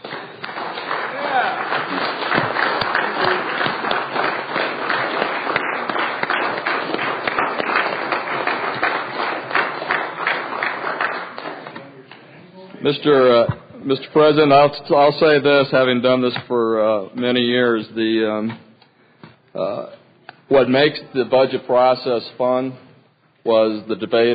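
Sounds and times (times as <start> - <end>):
audience applause: 0.0 - 11.8
speech: 12.9 - 18.6, 19.6 - 22.8, 23.4 - 24.3.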